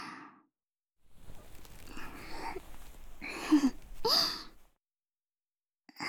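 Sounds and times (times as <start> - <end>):
blowing into left and right ears: 1.2 - 4.6.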